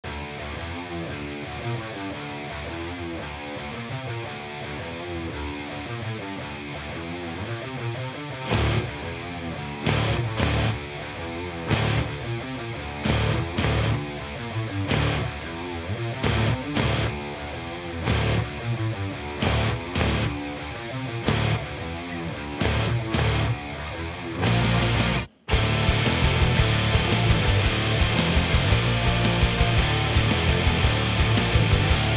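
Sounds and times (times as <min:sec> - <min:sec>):
metal music: 0:00.1 - 0:32.1.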